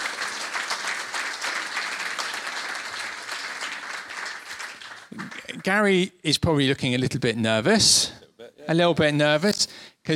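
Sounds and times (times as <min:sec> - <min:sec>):
audience applause: 0:00.0 - 0:05.7
speech: 0:05.2 - 0:10.1.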